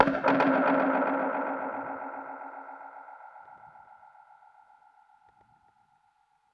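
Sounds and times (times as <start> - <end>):
dub percussion hit: 0.0 - 4.9.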